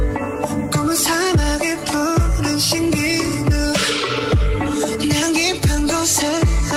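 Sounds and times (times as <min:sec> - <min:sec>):
pop song playing: 0:00.0 - 0:06.7.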